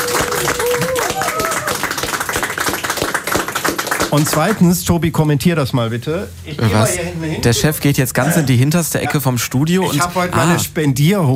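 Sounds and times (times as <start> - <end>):
raised voices and whoops: 0.0 - 1.8
group applauding: 0.0 - 4.8
speech: 4.1 - 11.3.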